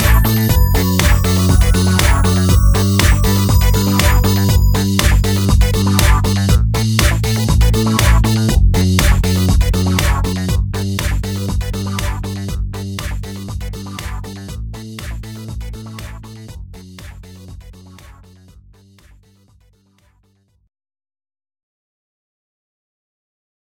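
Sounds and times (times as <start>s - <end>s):
disco music: 0.0s - 17.4s.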